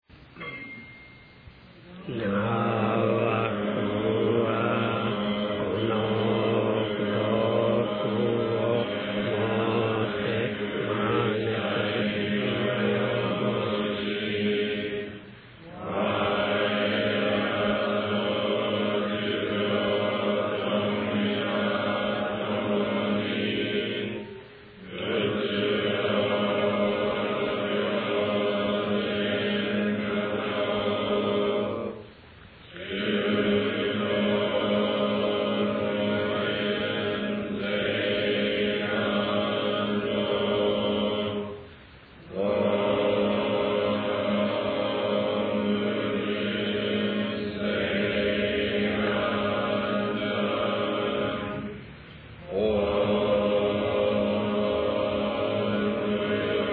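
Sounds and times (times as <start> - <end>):
end chant: 0.0 - 56.7.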